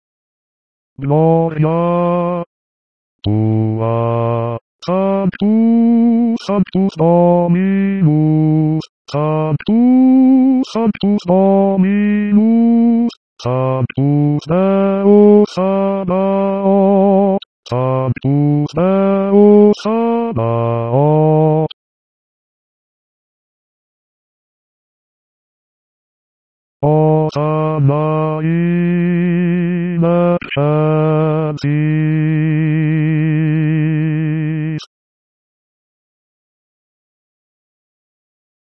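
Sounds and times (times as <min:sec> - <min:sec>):
bass voices singing the Sanctus of a mass: 0:01.0 - 0:02.5, 0:03.2 - 0:21.8, 0:26.8 - 0:34.9.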